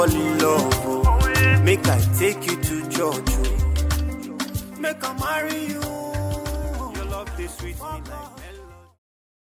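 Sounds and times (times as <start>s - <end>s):
melody: 0.0s - 7.6s.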